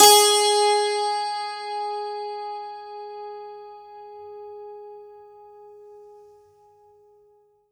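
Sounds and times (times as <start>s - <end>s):
santoor: 0.0s - 4.5s.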